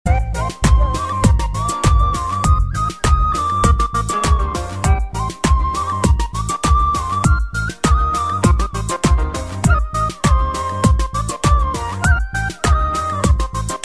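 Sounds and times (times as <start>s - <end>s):
hip hop music: 0.1s - 6.6s, 7.7s - 13.8s.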